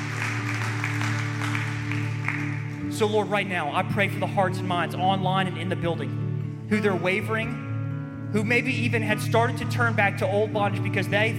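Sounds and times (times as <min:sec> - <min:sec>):
church congregation clapping in rhythm: 0:00.0 - 0:03.0
speech: 0:03.0 - 0:07.6, 0:08.3 - 0:11.3.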